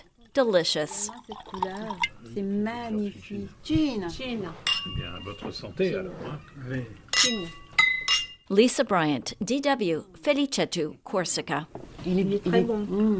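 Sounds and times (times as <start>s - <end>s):
people conversing: 0.0s - 13.1s
speech: 0.4s - 7.6s, 8.5s - 13.1s
glasses clinking: 1.3s - 2.2s, 4.6s - 8.5s
tableware clattering: 4.6s - 6.0s, 7.1s - 8.5s.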